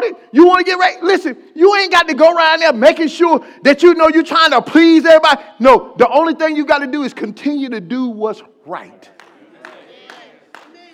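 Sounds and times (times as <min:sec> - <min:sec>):
speech: 0:00.3 - 0:09.2
audience clapping: 0:09.1 - 0:10.9.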